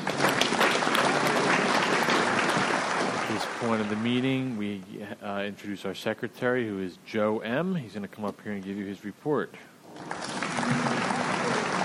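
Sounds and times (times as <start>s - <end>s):
audience applause: 0.0s - 4.2s, 9.9s - 11.8s
speech: 3.6s - 10.8s.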